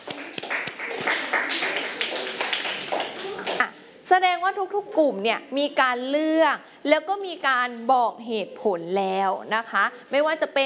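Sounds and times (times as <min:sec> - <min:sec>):
classroom of people clapping hands: 0:00.0 - 0:03.7
speech: 0:04.2 - 0:10.6.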